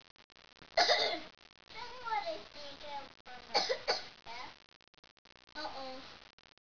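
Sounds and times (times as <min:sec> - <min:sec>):
person coughing: 0:00.8 - 0:01.2, 0:03.6 - 0:04.0.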